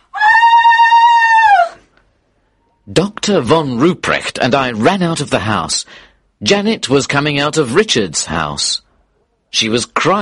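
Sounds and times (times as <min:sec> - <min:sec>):
long terrible scream: 0:00.0 - 0:01.8
speech: 0:03.0 - 0:08.9, 0:09.5 - 0:10.2.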